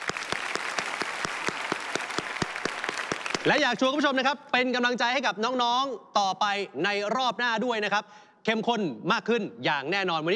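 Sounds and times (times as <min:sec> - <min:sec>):
small group clapping: 0:00.0 - 0:04.0
speech: 0:03.4 - 0:10.3.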